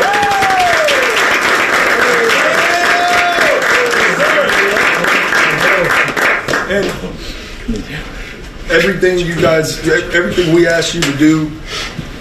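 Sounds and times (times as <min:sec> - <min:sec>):
applause: 0:00.0 - 0:07.0
speech: 0:07.7 - 0:08.1, 0:08.7 - 0:12.0.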